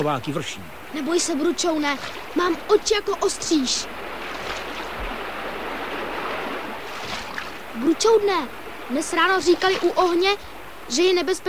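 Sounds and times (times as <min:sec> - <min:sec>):
speech: 0:00.0 - 0:04.0, 0:07.8 - 0:11.4
roaring river in flood: 0:00.0 - 0:11.4.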